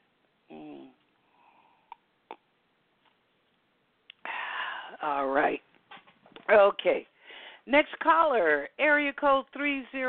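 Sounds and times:
person humming: 0.5s - 1.0s
breathy exhale: 4.2s - 5.0s, 7.2s - 7.6s
speech: 5.0s - 5.6s, 6.5s - 7.1s, 7.7s - 10.0s.

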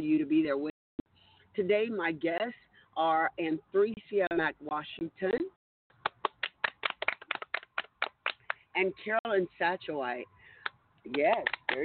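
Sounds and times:
speech: 0.0s - 0.7s, 1.6s - 5.6s, 8.8s - 10.4s, 11.0s - 11.8s
hands clapping: 6.0s - 8.6s, 10.6s - 11.8s.

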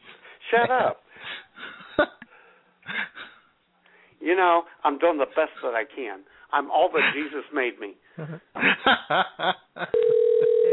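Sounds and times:
speech: 0.5s - 1.0s, 2.0s - 2.2s, 4.2s - 10.2s
telephone ringing: 9.9s - 10.7s.

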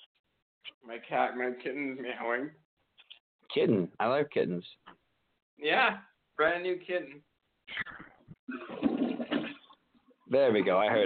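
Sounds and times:
speech: 0.8s - 2.6s, 3.5s - 5.0s, 5.6s - 8.8s, 10.3s - 11.0s
toilet flushing: 8.6s - 9.7s.

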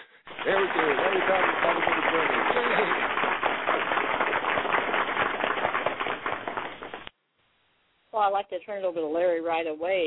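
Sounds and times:
crowd applause sound effect: 0.0s - 7.1s
speech: 0.4s - 3.0s, 8.2s - 10.0s.

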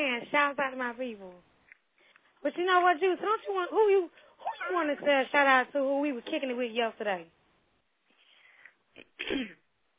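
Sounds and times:
speech: 0.2s - 1.5s, 2.4s - 7.4s, 9.0s - 9.6s
throat clearing: 9.0s - 9.7s.

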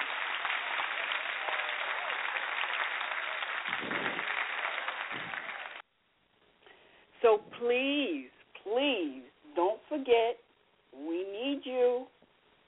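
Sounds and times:
round of applause for past Salute a Youth candidates: 0.0s - 5.8s
speech: 7.2s - 10.4s, 11.4s - 12.1s.

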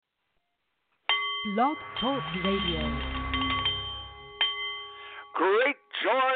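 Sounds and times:
Nepalese meditation bowl chiming: 1.1s - 5.7s
speech: 1.4s - 3.2s, 5.4s - 6.3s.

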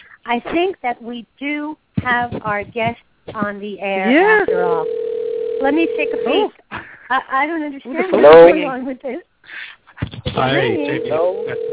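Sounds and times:
speech: 0.3s - 5.0s, 5.6s - 11.7s
person talking over telephone line: 4.1s - 5.0s, 5.6s - 6.5s, 10.0s - 11.7s
telephone ringing: 4.5s - 6.5s, 10.4s - 11.7s.

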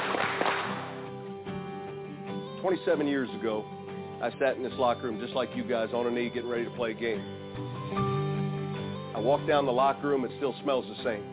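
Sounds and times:
hand claps: 0.0s - 1.2s
speech: 2.6s - 8.2s, 9.2s - 11.3s.

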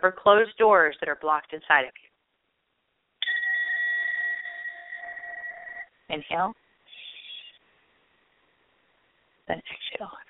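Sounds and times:
speech: 0.0s - 2.1s, 6.1s - 6.6s, 9.5s - 10.2s
breath bowl struck and ringing: 3.2s - 5.9s.

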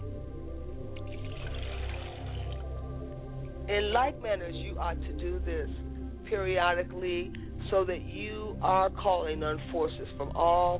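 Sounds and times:
liquid poured as a libation: 1.0s - 2.7s
speech: 3.7s - 10.7s.

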